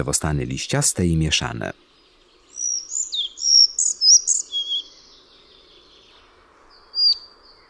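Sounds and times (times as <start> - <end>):
speech: 0.0 - 1.9
bird's short modulated whistles: 2.5 - 5.1, 7.0 - 7.3.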